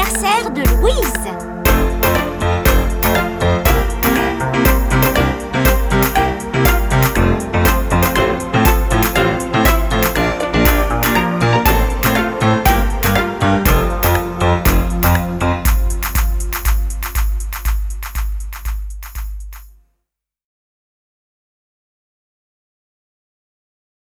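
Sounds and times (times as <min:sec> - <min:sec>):
karaoke backing track: 0:00.0 - 0:17.6.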